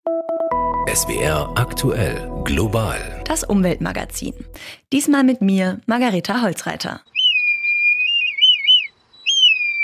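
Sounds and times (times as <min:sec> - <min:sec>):
speech: 0:00.0 - 0:07.1
red kite call: 0:07.2 - 0:09.8.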